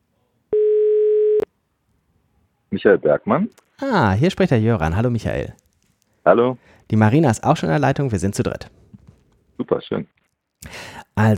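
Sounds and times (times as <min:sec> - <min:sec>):
telephone ringing tone on a call: 0:00.5 - 0:01.5
speech: 0:02.7 - 0:05.6, 0:06.2 - 0:08.8, 0:09.6 - 0:11.3.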